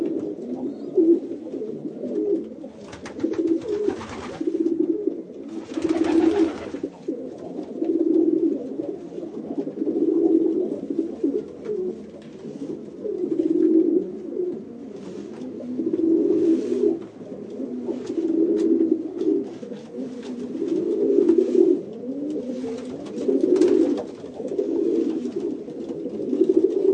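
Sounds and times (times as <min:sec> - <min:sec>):
pigeon cooing: 0:00.0 - 0:26.9
rustling or flapping: 0:02.8 - 0:04.7, 0:05.5 - 0:07.8, 0:14.9 - 0:26.9.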